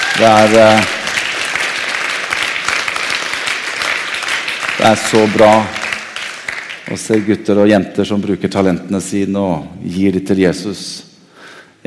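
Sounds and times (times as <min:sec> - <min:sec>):
audience applause for musicians: 0:00.0 - 0:07.4
speech: 0:00.2 - 0:01.0, 0:04.8 - 0:05.8, 0:06.9 - 0:11.1.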